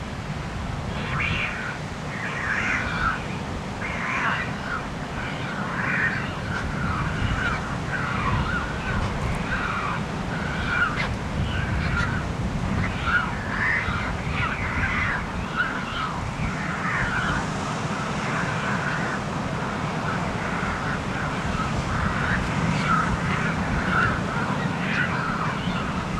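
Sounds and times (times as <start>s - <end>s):
surf rumbling: 0.0s - 26.1s
wind: 0.0s - 26.1s
pelicans squawking: 0.9s - 26.1s.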